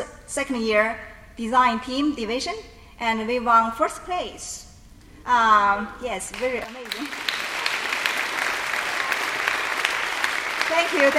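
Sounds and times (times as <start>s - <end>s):
speech: 0.0s - 7.4s, 10.7s - 11.1s
audience applause: 6.8s - 11.1s.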